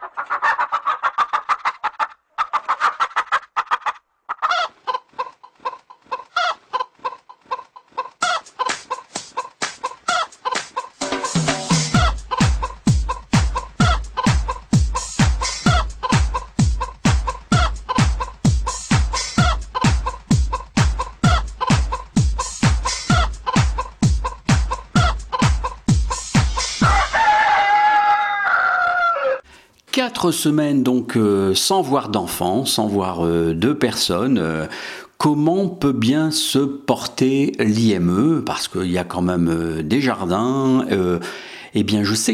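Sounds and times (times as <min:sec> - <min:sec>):
hens clucking in a courtyard: 0:00.0 - 0:29.4
rooster crowing: 0:26.8 - 0:29.4
speech: 0:30.3 - 0:42.3.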